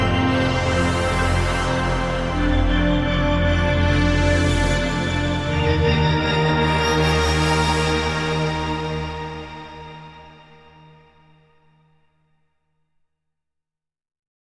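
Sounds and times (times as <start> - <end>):
Sequential Prophet X synthesizer: 0.0 - 11.5.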